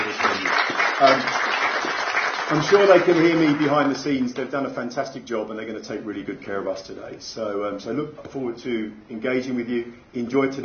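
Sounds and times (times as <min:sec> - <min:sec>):
audience applause: 0:00.0 - 0:04.2
speech: 0:02.5 - 0:10.6.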